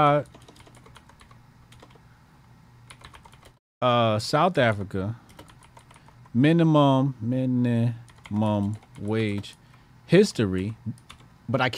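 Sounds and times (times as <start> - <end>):
speech: 0.0 - 0.4, 3.8 - 5.2, 6.3 - 11.7
typing a web search on a computer keyboard: 0.0 - 2.0, 2.9 - 3.6, 4.6 - 6.3, 8.0 - 9.7, 10.6 - 11.3.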